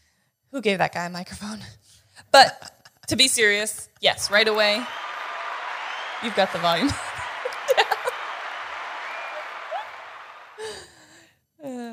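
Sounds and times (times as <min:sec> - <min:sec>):
speech: 0:00.5 - 0:05.1, 0:06.2 - 0:07.1
laughter: 0:04.2 - 0:10.8
person clapping: 0:04.2 - 0:10.8.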